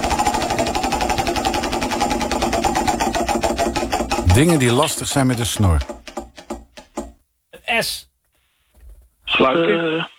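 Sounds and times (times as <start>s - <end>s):
prize wheel spinning and clicking: 0.1s - 7.1s
speech: 4.4s - 6.0s, 7.8s - 8.1s, 9.4s - 10.1s.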